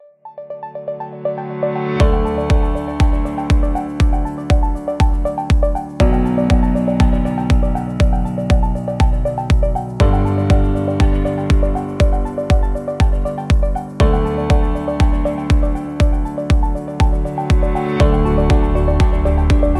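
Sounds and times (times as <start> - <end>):
tech background music: 0.2 - 19.7.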